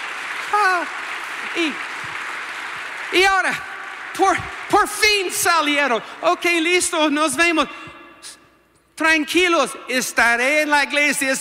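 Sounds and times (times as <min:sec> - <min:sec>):
audience applause: 0:00.0 - 0:06.3
speech: 0:00.8 - 0:02.0, 0:03.1 - 0:07.9, 0:09.0 - 0:11.3.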